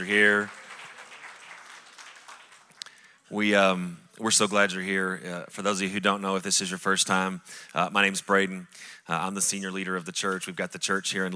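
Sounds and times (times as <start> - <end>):
speech: 0.0 - 0.6, 3.3 - 11.3
audience applause: 0.0 - 3.1.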